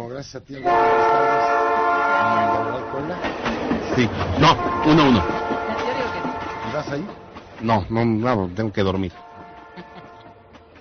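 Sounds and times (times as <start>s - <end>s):
speech: 0.1s - 5.6s, 6.8s - 9.2s
low rail rumble of arriving train: 0.2s - 10.7s
arriving train sounding its horn: 0.6s - 3.3s, 4.3s - 7.2s, 9.1s - 10.7s.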